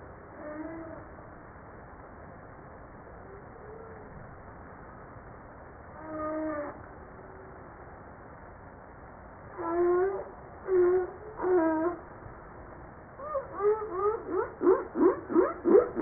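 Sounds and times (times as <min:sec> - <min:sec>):
humpback whale descending harmonic moans: 0:00.3 - 0:01.1, 0:06.0 - 0:06.8, 0:09.5 - 0:12.1, 0:13.2 - 0:16.0.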